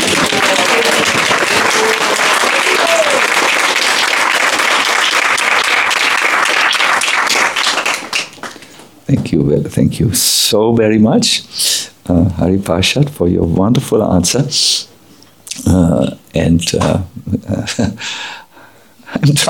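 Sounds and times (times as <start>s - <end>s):
audience applause: 0.0s - 8.7s
speech: 9.3s - 14.8s, 15.7s - 18.3s, 19.2s - 19.4s.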